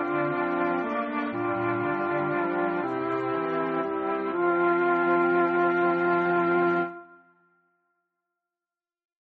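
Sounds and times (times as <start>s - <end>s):
waltz music: 0.0s - 7.2s.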